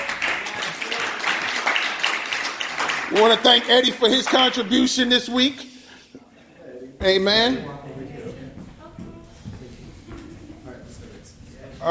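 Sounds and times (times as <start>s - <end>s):
crowd applause: 0.0s - 5.1s
speech: 3.1s - 5.7s, 7.0s - 7.8s.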